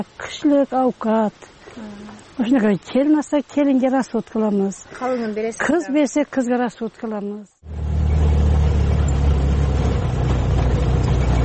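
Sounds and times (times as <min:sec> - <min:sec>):
speech: 0:00.0 - 0:07.8
half-century-old Russian UAZ off-road car engine rumble: 0:07.6 - 0:11.4.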